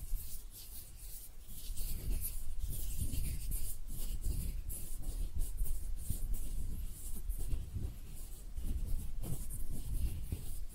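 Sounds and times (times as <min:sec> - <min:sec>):
palms rubbing and brushing against skin: 0:00.0 - 0:10.7
scratchy flicks and crackles: 0:00.0 - 0:10.7.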